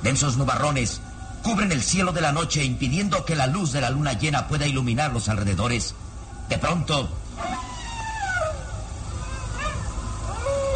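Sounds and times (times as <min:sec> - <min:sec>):
low rumbling background: 0:00.0 - 0:10.7
speech: 0:00.1 - 0:07.7
canine howl: 0:07.4 - 0:10.7.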